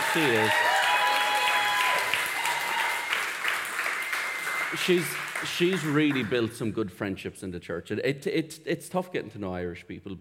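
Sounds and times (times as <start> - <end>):
crowd applause: 0.0 - 6.5
speech: 0.2 - 0.7, 4.7 - 10.1.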